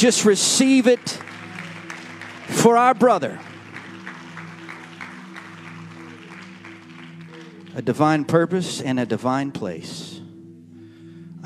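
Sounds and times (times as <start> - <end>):
speech: 0.0 - 1.3, 2.5 - 3.5, 7.8 - 10.1
audience clapping hands in rhythm: 0.0 - 8.8
sustained droning music tone: 0.0 - 11.4.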